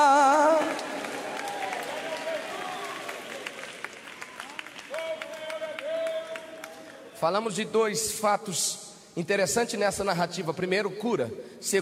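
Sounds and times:
audience clapping: 0.0 - 7.2
speech: 7.2 - 11.8.

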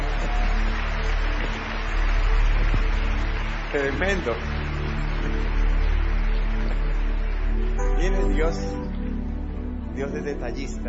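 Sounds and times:
audience applause: 0.0 - 9.9
speech: 3.7 - 4.6, 8.0 - 8.8, 10.0 - 10.8.

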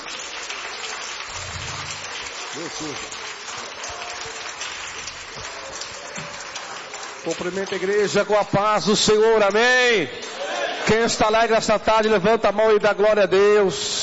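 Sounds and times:
audience applause: 0.0 - 8.6
speech: 2.6 - 3.2, 7.2 - 10.3, 10.9 - 13.9.

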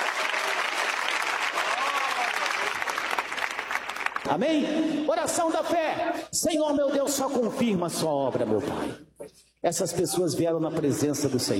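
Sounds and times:
audience clapping hands: 0.0 - 4.4
speech: 4.3 - 11.5.

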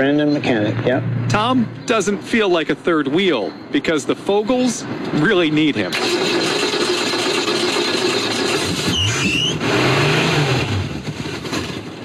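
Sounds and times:
speech: 0.0 - 6.6
100-year-old Hupmobile engine revving and sputtering: 6.0 - 12.0.

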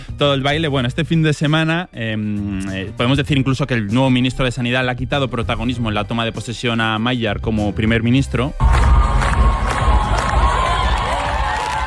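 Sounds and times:
speech: 0.2 - 9.0
crowd cheering on the steps of the Hungarian Parliament: 8.6 - 11.8
scattered high shouts from crowd: 8.6 - 11.8.

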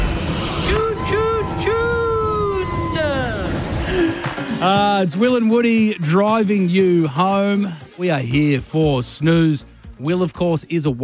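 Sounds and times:
busy street traffic engines rumbling: 0.0 - 5.0
sirens wailing: 0.0 - 5.0
speech: 4.6 - 11.0.

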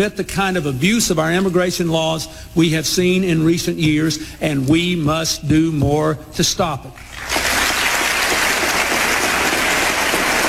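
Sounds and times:
speech: 0.0 - 7.4
audience applause in Congress: 7.0 - 10.4.

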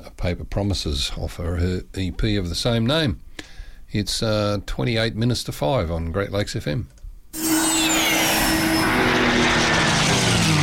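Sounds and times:
speech: 0.2 - 7.4
aircraft engine roar: 7.4 - 10.6.

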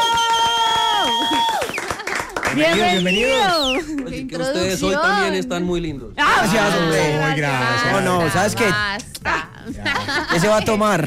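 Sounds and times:
audience applause: 0.0 - 4.2
speech: 2.6 - 11.0
laughter: 9.7 - 11.0.

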